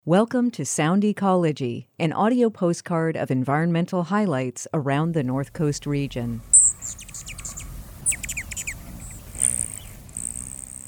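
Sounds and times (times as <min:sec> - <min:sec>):
speech: 0:00.1 - 0:07.0
Allans and Rufous hummingbird calls: 0:06.5 - 0:10.8.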